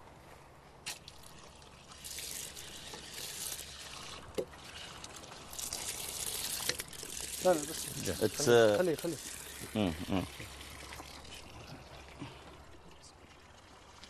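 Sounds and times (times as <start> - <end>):
water running from a donated drinking-water tap: 1.8 - 12.5
speech: 7.4 - 10.6.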